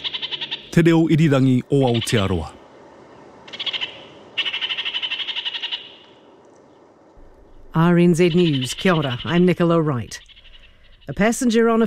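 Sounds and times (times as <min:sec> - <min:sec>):
New Zealand parakeet kākāriki call: 0:00.0 - 0:00.8, 0:03.5 - 0:06.2, 0:07.5 - 0:11.5
speech: 0:00.7 - 0:02.6, 0:07.7 - 0:10.3, 0:11.1 - 0:11.8.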